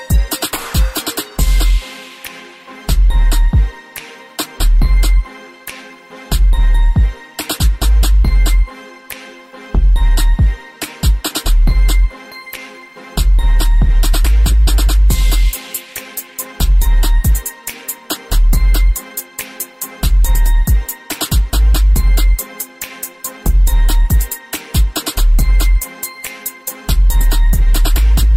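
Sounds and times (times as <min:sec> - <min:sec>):
karaoke backing beat: 0:00.0 - 0:28.3.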